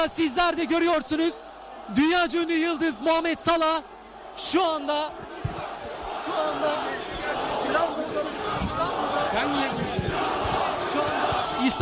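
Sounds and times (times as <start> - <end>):
speech: 0.0 - 5.3, 6.2 - 7.1, 10.9 - 11.7
crowd shouting and chanting at Atatürk airport: 0.0 - 11.7.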